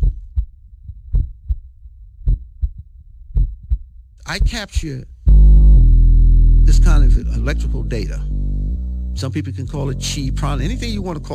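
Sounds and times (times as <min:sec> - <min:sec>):
recorded heartbeat lub-dub thumps: 0:00.0 - 0:09.2
speech: 0:04.3 - 0:05.1, 0:06.7 - 0:08.3, 0:09.2 - 0:11.3.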